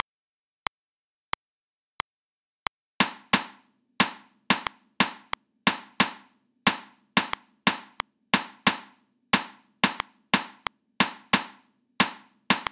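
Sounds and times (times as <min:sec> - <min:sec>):
reversed sixteenth-note rhythms at 90 BPM: 0:03.0 - 0:12.7.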